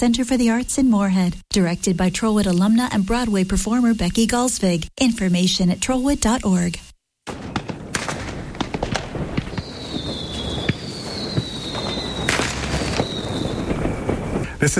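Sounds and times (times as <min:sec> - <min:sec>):
speech: 0:00.0 - 0:07.6
Fourth of July fireworks whistling: 0:05.7 - 0:14.7
Fourth of July fireworks exploding: 0:07.2 - 0:14.7.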